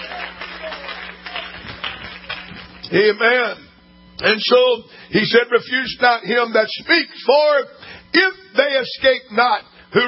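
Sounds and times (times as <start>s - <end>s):
audience clapping hands: 0.0s - 2.9s
speech: 2.9s - 3.6s, 4.2s - 10.0s.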